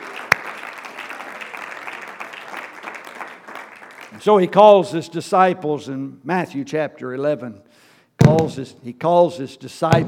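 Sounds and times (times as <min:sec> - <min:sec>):
people clapping hands: 0:00.0 - 0:04.3
speech: 0:04.1 - 0:07.7, 0:08.3 - 0:10.0.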